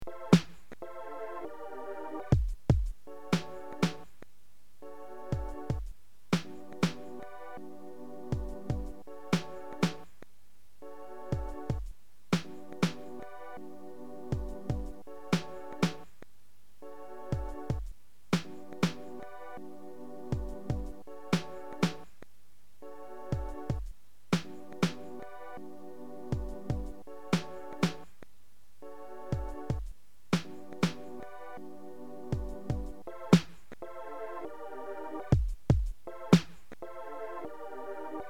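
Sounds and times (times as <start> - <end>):
music beat: 0.1 - 0.9, 2.2 - 4.2, 5.2 - 7.4, 8.3 - 10.2, 11.2 - 13.6, 14.3 - 16.2, 17.3 - 19.5, 20.4 - 22.1, 23.3 - 25.4, 26.4 - 28.1, 29.3 - 31.6, 32.3 - 33.9, 35.3 - 36.9.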